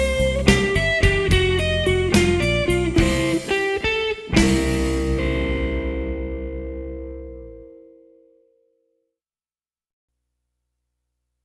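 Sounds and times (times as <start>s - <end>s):
hard-edged fast-tempo blues music: 0.0s - 7.8s.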